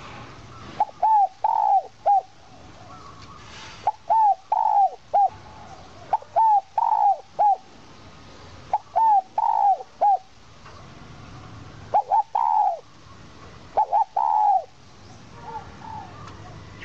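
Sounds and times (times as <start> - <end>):
owl call: 0.8 - 2.3, 3.4 - 5.4, 6.1 - 7.6, 8.7 - 10.3, 11.9 - 12.8, 13.8 - 14.7.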